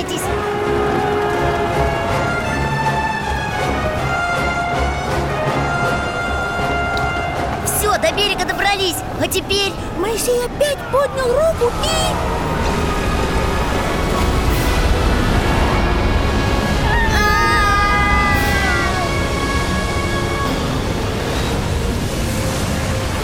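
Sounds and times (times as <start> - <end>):
sea waters rushing together and closing: 0.0 - 23.2
speech: 8.8 - 12.6.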